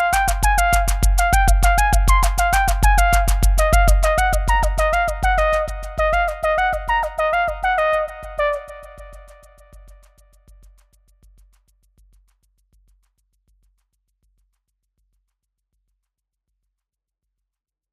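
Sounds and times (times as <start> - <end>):
distant horn: 0.0 - 9.5.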